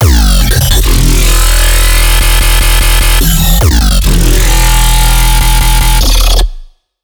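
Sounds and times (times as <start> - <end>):
dubstep bass loop at 150 bpm: 0.0 - 6.6.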